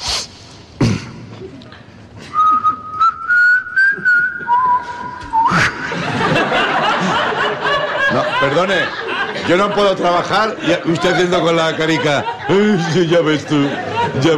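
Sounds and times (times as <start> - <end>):
person whistling a melody: 2.3 - 5.8
laughter: 3.9 - 14.3
speech: 8.6 - 14.3.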